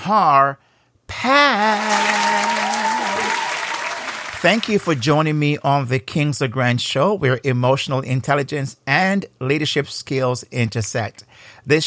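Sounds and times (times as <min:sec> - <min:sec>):
speech: 0:00.0 - 0:02.8, 0:04.4 - 0:11.8
long held cheer-like tone: 0:01.4 - 0:04.8
audience applause welcoming a guest onto a talk show: 0:01.7 - 0:05.0.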